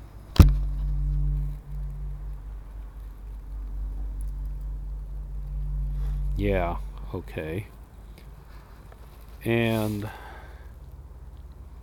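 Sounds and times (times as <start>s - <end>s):
aluminum parabolic dish struck like a gong: 0.4s - 7.6s
steady low rumble: 0.4s - 7.8s
speech: 6.4s - 7.8s, 9.4s - 10.2s.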